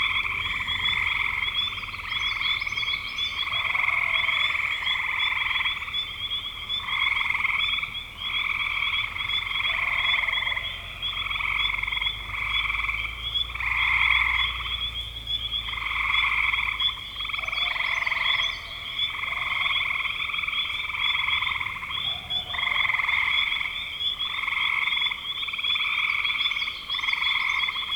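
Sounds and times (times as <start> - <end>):
frog chorus trilling: 0.0 - 27.9.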